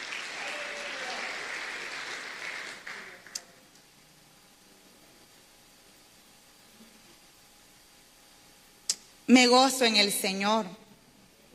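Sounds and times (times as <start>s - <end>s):
audience applauding: 0.0s - 3.6s
speech: 9.3s - 10.8s.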